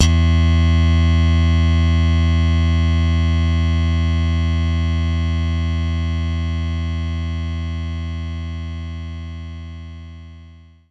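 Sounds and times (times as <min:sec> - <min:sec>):
slap bass note E3: 0:00.0 - 0:07.7.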